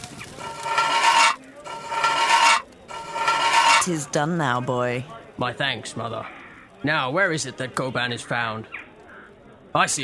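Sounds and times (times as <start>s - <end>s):
spear head being ground sharp: 0.4s - 4.0s
speech: 3.9s - 8.8s, 9.7s - 10.0s.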